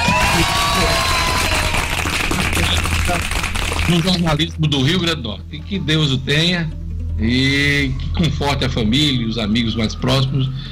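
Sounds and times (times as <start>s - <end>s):
round of applause: 0.0s - 4.5s
speech: 3.1s - 10.7s.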